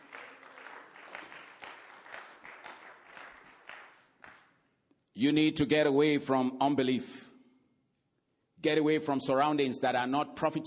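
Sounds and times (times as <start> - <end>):
audience hand clapping: 0.0 - 4.8
speech: 5.2 - 7.2, 8.6 - 10.6.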